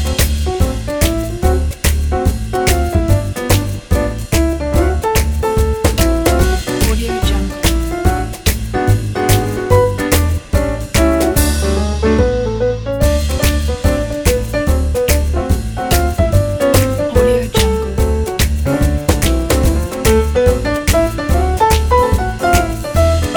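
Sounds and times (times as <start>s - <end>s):
vintage swing jazz trio: 0.0s - 23.3s.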